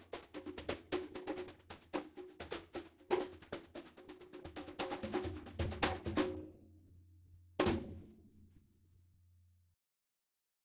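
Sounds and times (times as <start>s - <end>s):
congas: 0.0s - 6.6s, 7.6s - 8.1s.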